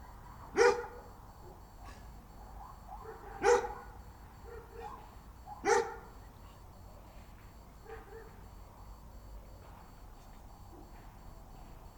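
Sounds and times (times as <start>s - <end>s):
dog barking loud woofs: 0.6s - 1.0s, 2.6s - 6.1s, 7.8s - 8.4s
fainter answering dog barks: 2.6s - 6.2s.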